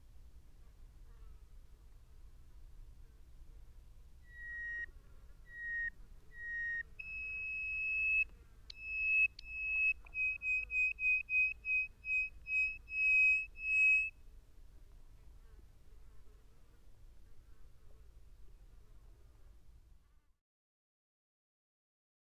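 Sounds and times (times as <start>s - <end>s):
bird whistling: 4.3s - 4.9s, 5.5s - 14.1s.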